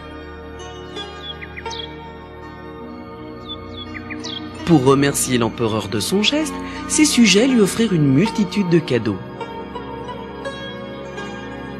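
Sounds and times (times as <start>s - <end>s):
nightingale singing: 0.9s - 2.5s, 3.2s - 9.0s
speech: 4.7s - 9.3s.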